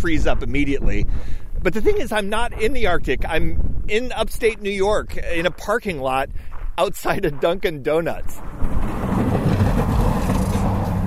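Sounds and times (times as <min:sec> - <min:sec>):
speech: 0:00.0 - 0:08.8
snow plow pushing drifts of snow in a parking lot in upstate New York: 0:08.4 - 0:11.0.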